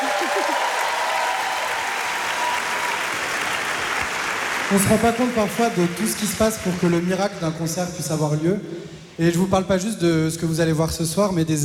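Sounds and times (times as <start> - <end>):
audience applause: 0.0 - 7.2
speech: 4.7 - 11.6.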